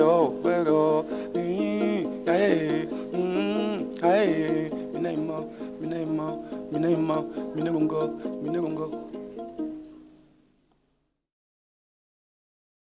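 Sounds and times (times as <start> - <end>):
gitari forest music from northern Belgian Congo: 0.0 - 10.3.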